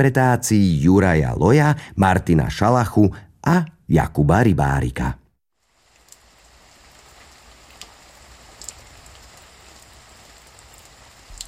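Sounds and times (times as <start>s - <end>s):
speech: 0.0s - 5.2s
louder drips or splashes: 5.6s - 11.4s
steady rain falling: 5.6s - 11.4s.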